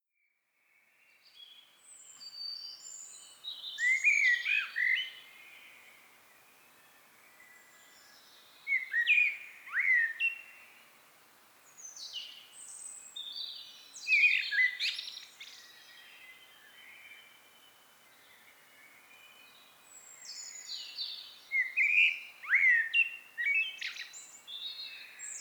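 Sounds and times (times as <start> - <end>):
Common blackbird singing: 2.2 - 5.3, 7.7 - 10.5, 13.2 - 17.2, 20.2 - 25.3.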